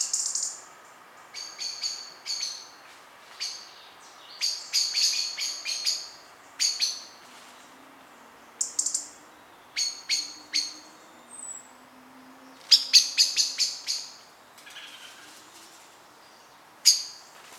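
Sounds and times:
Common blackbird giving sharp chinking calls: 0.0s - 0.6s, 1.2s - 2.8s, 3.4s - 7.8s, 8.5s - 11.7s, 12.5s - 15.3s, 16.2s - 17.3s.

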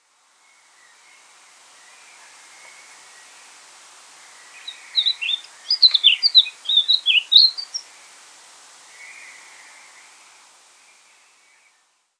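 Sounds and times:
background hiss: 0.0s - 12.1s
Eurasian blackcap calls: 4.7s - 7.8s.

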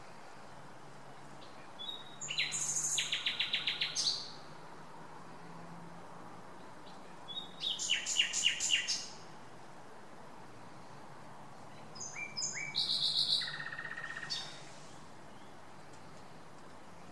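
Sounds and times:
common nightingale Luscinia megarhynchos singing whistled rattling and clicking phrases: 1.1s - 4.5s, 6.6s - 9.3s, 11.7s - 15.7s.

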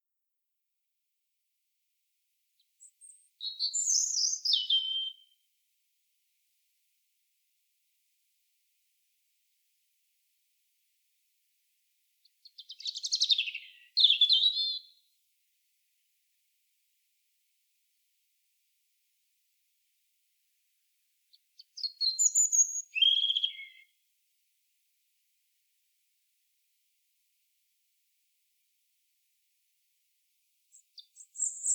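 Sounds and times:
European robin song: 2.6s - 5.5s, 12.2s - 15.2s, 21.3s - 24.0s, 30.7s - 31.7s.

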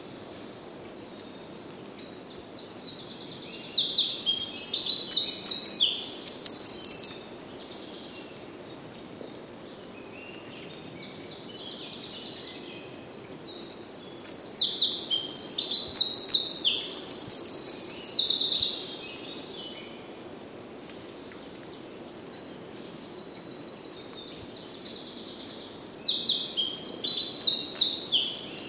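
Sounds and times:
Eurasian wren singing: 2.3s - 7.5s, 10.0s - 19.8s, 22.9s - 28.6s.

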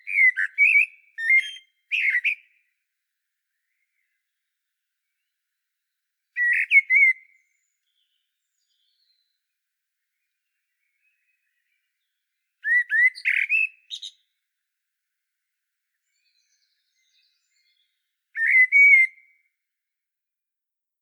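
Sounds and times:
common blackbird singing: 0.0s - 2.7s, 6.4s - 9.4s, 12.6s - 14.3s, 16.0s - 19.5s.

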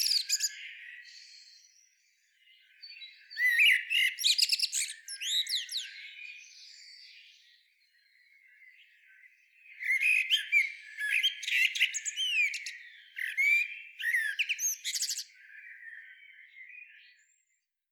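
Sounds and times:
common blackbird calls: 0.0s - 1.1s, 2.9s - 6.4s, 9.7s - 17.1s.

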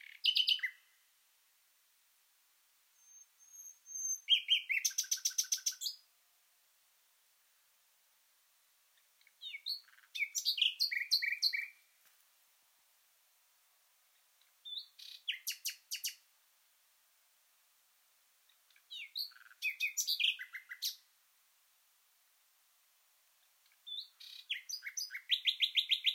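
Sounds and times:
common nightingale song: 0.0s - 0.9s, 3.0s - 6.0s, 9.2s - 11.9s, 14.4s - 16.2s, 18.5s - 21.0s, 23.6s - 26.1s.

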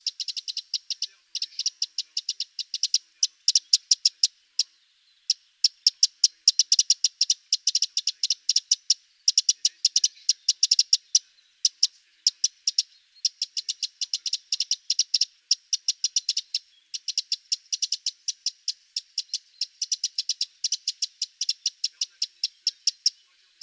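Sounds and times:
Eurasian wren ticking calls: 0.0s - 23.6s.

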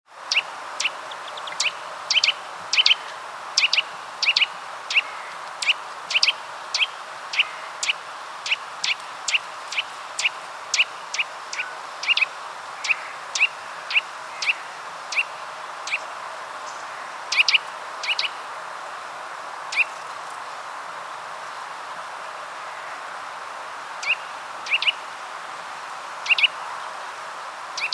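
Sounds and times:
background hiss: 0.1s - 27.9s
Eurasian nuthatch calling: 0.3s - 18.4s, 19.7s - 20.0s, 24.0s - 25.0s, 26.2s - 26.6s.

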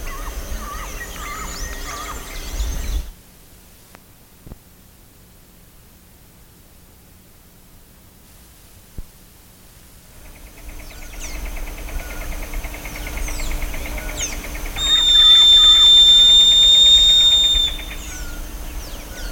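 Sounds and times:
sharp bending bird chirps: 14.2s - 18.4s.

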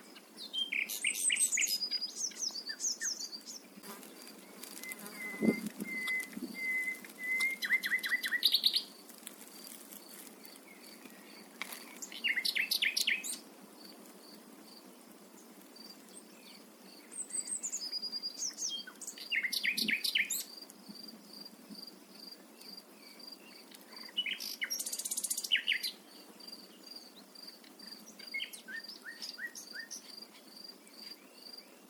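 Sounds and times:
common nightingale singing: 0.0s - 3.7s, 4.4s - 9.0s, 9.9s - 13.4s, 16.3s - 20.6s, 22.6s - 26.1s, 26.8s - 31.8s.

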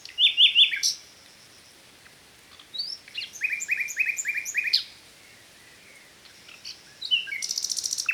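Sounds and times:
common nightingale Luscinia megarhynchos song: 0.0s - 1.6s, 2.7s - 4.9s, 5.8s - 8.1s.

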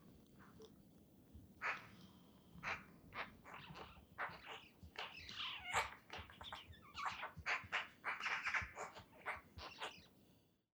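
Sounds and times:
Eurasian magpie harsh chattering calls: 1.6s - 2.0s, 2.6s - 10.1s.

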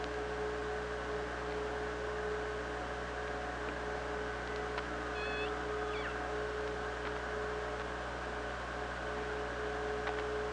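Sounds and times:
low hum: 0.0s - 10.5s
killer whale harmonic squeals: 5.1s - 6.2s.

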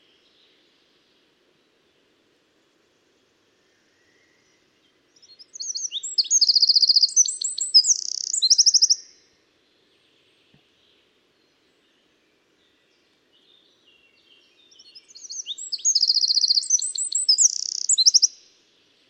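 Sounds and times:
Eurasian wren trilling song: 5.2s - 9.2s, 14.8s - 18.5s.

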